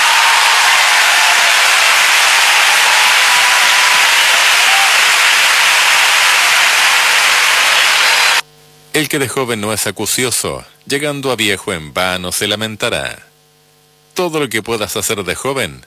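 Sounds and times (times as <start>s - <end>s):
audience applause: 0.0s - 8.4s
speech: 9.0s - 13.3s, 14.2s - 15.8s.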